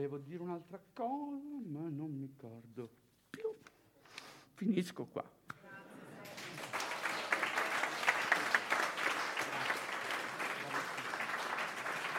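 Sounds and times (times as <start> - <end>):
speech: 0.0 - 3.6, 4.6 - 5.4
audience applause: 6.2 - 12.1.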